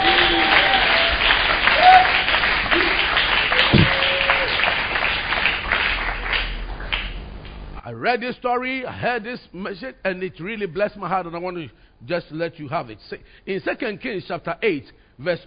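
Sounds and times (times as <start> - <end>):
audience applauding: 0.0 - 7.3
speech: 8.0 - 15.4.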